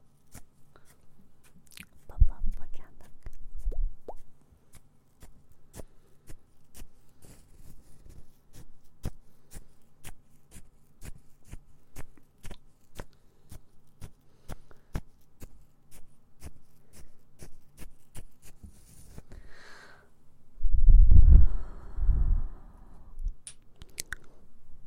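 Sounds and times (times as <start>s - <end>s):
mouth sounds and ear cleaning crackling clicks: 1.5s - 4.3s, 23.3s - 24.4s
low steady hum: 20.4s - 23.5s.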